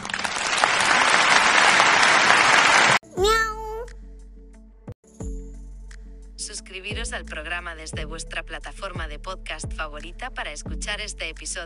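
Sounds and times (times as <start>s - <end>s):
applause: 0.0s - 3.0s
speech: 6.8s - 11.6s.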